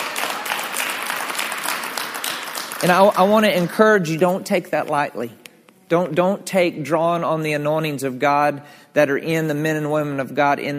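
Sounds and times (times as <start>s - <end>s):
crowd clapping hands: 0.0s - 3.9s
speech: 2.8s - 10.7s.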